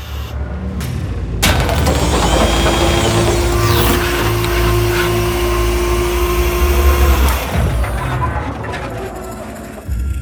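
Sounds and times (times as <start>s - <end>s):
spacecraft door opening mechanism whirring: 0.0s - 0.4s, 1.4s - 10.1s
low steady electronic hums: 1.4s - 8.2s.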